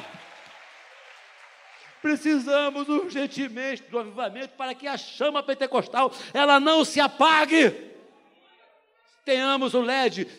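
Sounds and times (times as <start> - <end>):
audience clapping hands: 0.0 - 3.4
speech: 2.0 - 7.9, 9.2 - 10.3.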